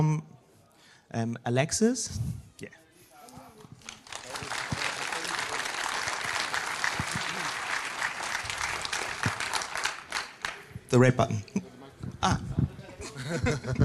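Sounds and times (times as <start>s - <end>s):
speech: 1.1s - 2.8s, 10.9s - 12.6s, 13.3s - 13.8s
audience clapping loudly: 3.7s - 10.9s
laughter: 12.9s - 13.8s.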